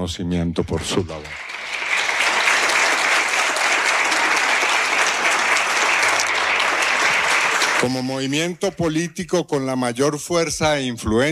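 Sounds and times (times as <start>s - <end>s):
speech: 0.0s - 1.5s, 7.8s - 11.2s
large audience applause: 1.1s - 8.5s.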